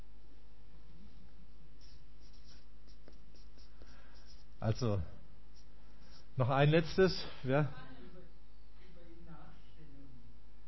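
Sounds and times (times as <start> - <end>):
pen scratching on paper in handwriting strokes: 1.8 - 4.9, 5.5 - 6.8
speech: 4.6 - 5.2, 6.4 - 7.9.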